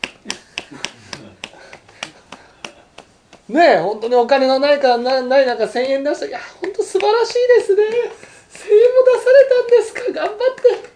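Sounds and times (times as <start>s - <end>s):
audience applause of slow evenly spaced claps: 0.0s - 3.5s, 5.8s - 10.9s
speech: 3.5s - 10.9s.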